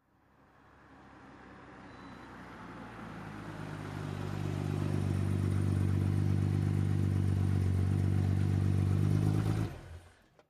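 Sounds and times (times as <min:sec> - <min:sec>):
BMW 530i engine idling: 0:04.6 - 0:10.0.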